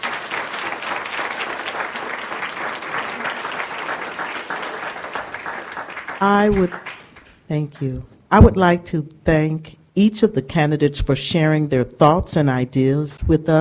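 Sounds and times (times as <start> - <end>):
audience applauding: 0.0 - 7.4
speech: 6.2 - 6.9, 7.5 - 13.6.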